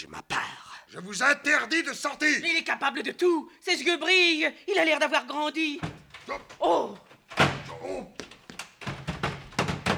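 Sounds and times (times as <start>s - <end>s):
speech: 0.9s - 7.1s, 7.8s - 8.2s
door slamming shut: 5.8s - 6.6s, 7.2s - 8.0s, 8.8s - 9.9s.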